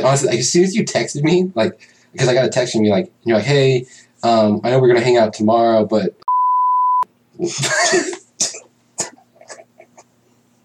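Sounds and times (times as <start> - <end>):
speech: 0.0 - 6.2, 7.4 - 8.1
censor bleep tone over a word: 6.3 - 7.1
person coughing or clearing throat: 7.4 - 9.8.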